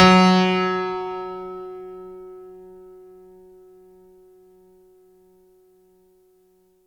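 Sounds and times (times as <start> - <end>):
synth note F#2: 0.0 - 1.6.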